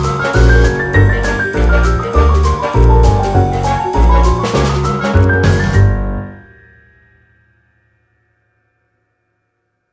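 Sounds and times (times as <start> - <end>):
suspicious criminal jazz: 0.0 - 6.5.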